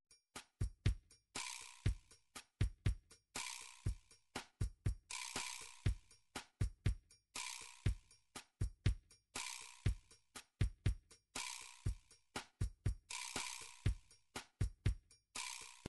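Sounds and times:
MIDI drums: 0.6 - 1.2, 1.8 - 3.1, 3.8 - 7.2, 7.8 - 9.2, 9.8 - 11.2, 11.8 - 15.1.

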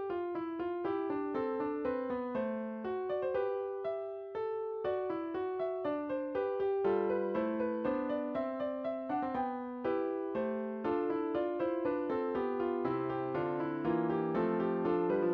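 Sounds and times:
classical fugue in MIDI: 0.2 - 15.3.

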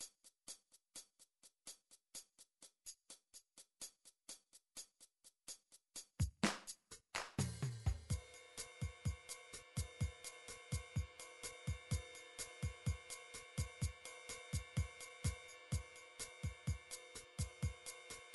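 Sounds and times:
bossa nova MIDI drums: 6.2 - 18.3.

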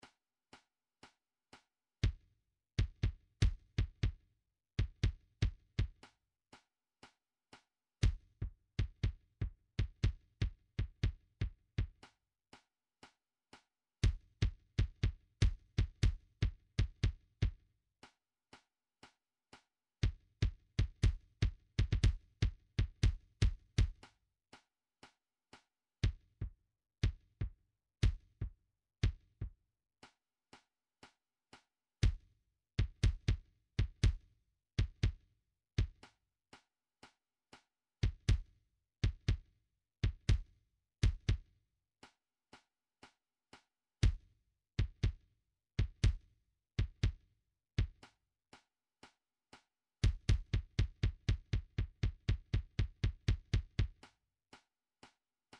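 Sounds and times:
kick drum: 2.0 - 4.2, 4.8 - 6.0, 8.0 - 12.1, 14.0 - 17.6, 20.0 - 24.1, 26.0 - 29.6, 32.0 - 36.1, 38.0 - 41.5, 44.0 - 48.1, 50.0 - 54.0.

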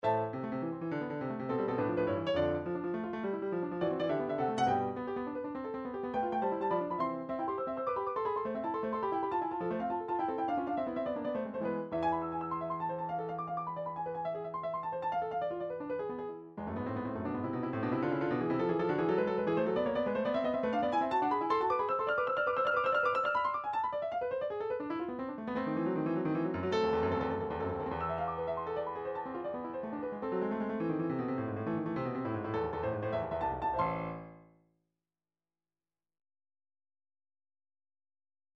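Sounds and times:
midi piano studies: 0.0 - 34.6.

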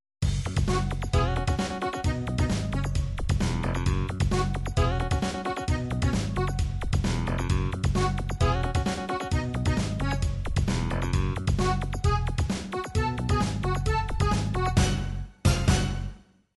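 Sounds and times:
anime cha-cha music: 0.2 - 16.4.

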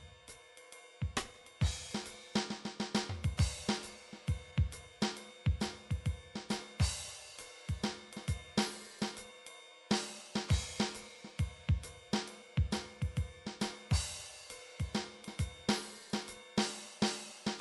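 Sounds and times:
MIDI big band drums: 1.1 - 9.2, 9.9 - 17.5.

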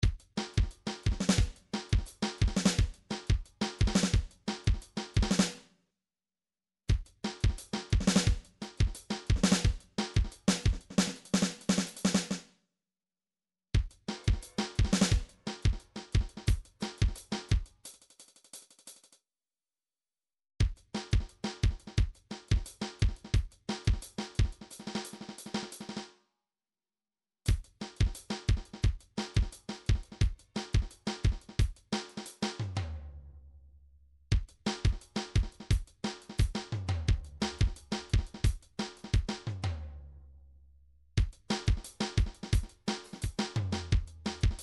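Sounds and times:
MIDI drum pattern: 0.0 - 5.6, 6.9 - 12.4, 13.8 - 18.0, 20.6 - 26.0, 27.5 - 32.9, 34.3 - 39.9, 41.2 - 44.6.

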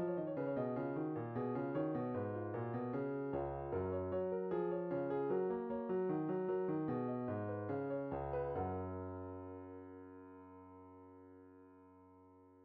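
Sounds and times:
classical fugue in MIDI: 0.0 - 9.3.

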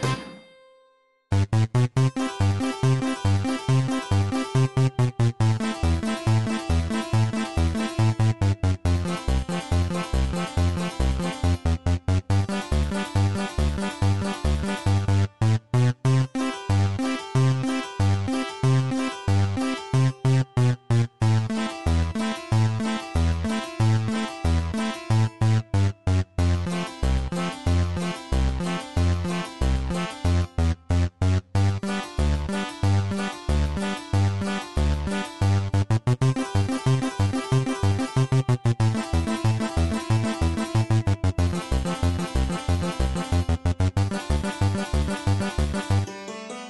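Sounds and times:
sequenced Super Nintendo western tune: 0.0 - 46.6.

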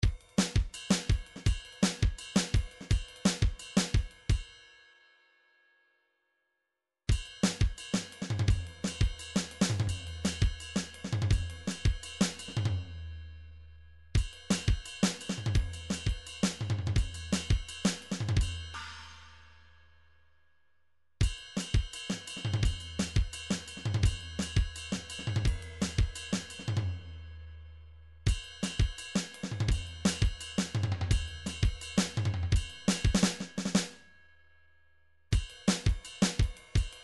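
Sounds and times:
MIDI drum cymbal: 0.0 - 4.5, 7.1 - 13.0, 14.2 - 19.6, 21.2 - 27.5, 28.3 - 34.0, 35.4 - 37.0.

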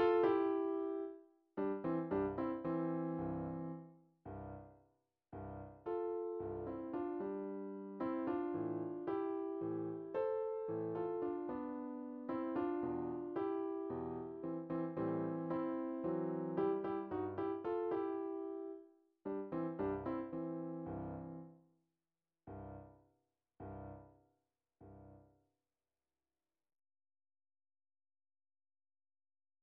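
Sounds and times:
MIDI piano piece on a Hungarian folksong: 0.0 - 4.7, 5.4 - 21.5.

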